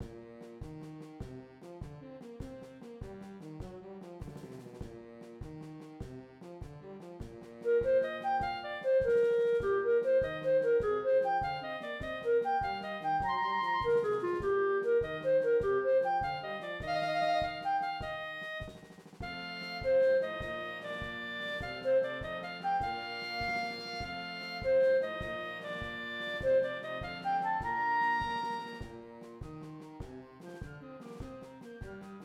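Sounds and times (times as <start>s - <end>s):
clarinet: 0.0s - 32.2s.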